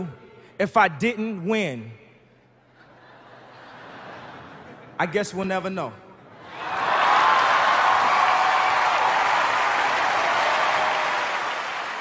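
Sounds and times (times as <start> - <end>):
speech: 0.0 - 2.0, 5.0 - 6.0
laughter: 2.7 - 5.1
awards-show audience standing ovation applause: 6.5 - 12.0.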